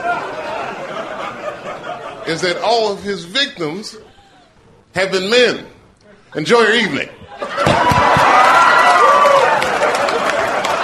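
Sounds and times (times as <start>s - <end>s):
laughter: 0.0s - 2.7s, 7.1s - 8.4s, 9.5s - 10.8s
speech: 2.3s - 4.1s, 5.0s - 7.2s
audience clapping: 7.6s - 10.8s.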